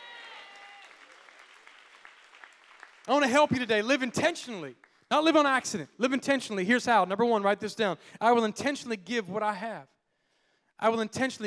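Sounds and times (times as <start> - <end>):
audience clapping hands: 0.0 - 5.1
speech: 3.1 - 10.0, 10.8 - 11.4.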